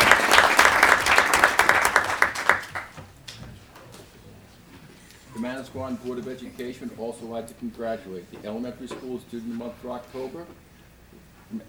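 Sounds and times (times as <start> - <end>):
audience applause at a board of education meeting for a student: 0.0 - 4.4
speech: 5.6 - 10.6.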